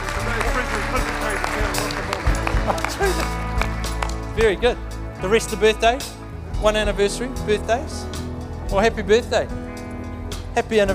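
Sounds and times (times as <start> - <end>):
round of applause: 0.0 - 4.4
speech: 4.4 - 9.6, 10.6 - 10.9.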